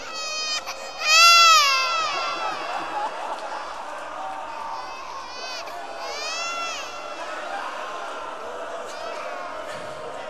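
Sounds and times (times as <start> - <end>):
baby crying: 0.0 - 3.1, 4.8 - 7.2
laughter: 0.0 - 10.2.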